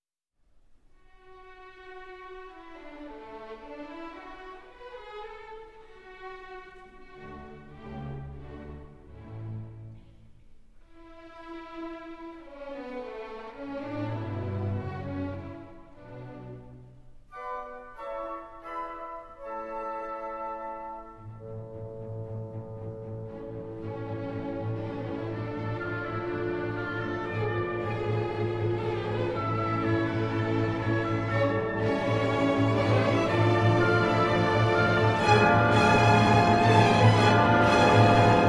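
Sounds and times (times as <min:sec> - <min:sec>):
violin concerto: 0:01.0 - 0:38.4.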